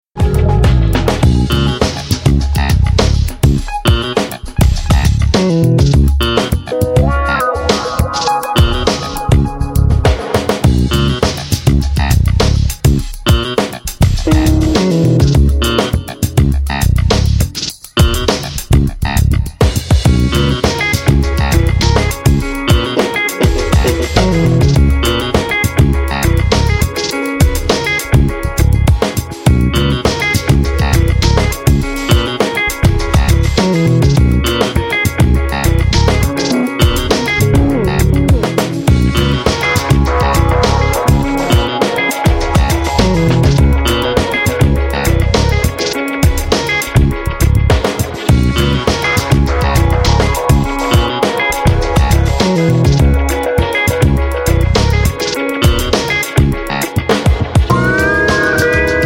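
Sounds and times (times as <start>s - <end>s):
funk music: 0.2s - 59.0s.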